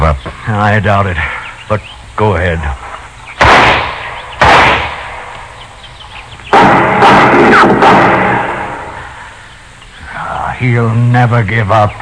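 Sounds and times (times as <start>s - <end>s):
speech: 0.1s - 2.8s, 10.6s - 12.0s
gunshots in a western radio drama: 3.4s - 5.3s, 6.5s - 9.0s.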